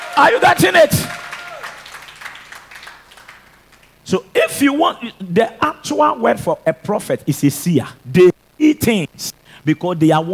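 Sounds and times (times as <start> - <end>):
audience clapping: 0.0 - 5.6
speech: 0.2 - 1.2, 4.1 - 10.3.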